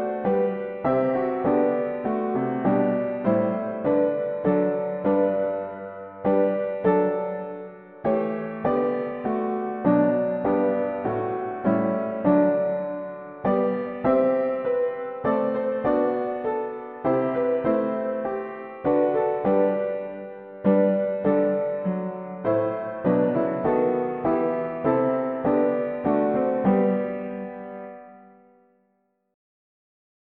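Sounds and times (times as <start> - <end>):
mono piano playing hymns: 0.0 - 28.5.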